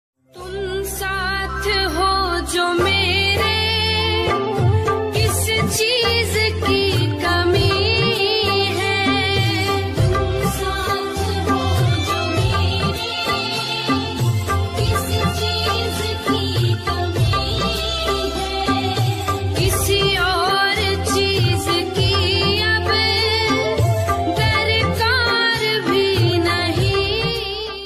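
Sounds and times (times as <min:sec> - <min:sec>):
Hindi devotional ringtone music: 0:00.4 - 0:27.8.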